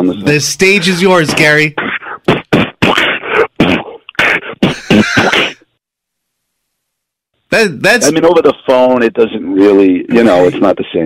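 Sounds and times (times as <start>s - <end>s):
speech: 0.0s - 1.9s, 7.5s - 11.0s
person beatboxing: 1.3s - 5.6s.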